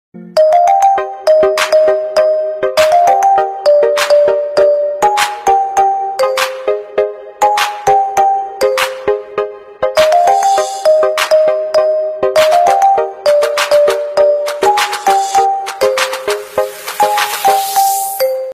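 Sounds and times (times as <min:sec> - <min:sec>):
instrumental ringtone music: 0:00.2 - 0:18.5.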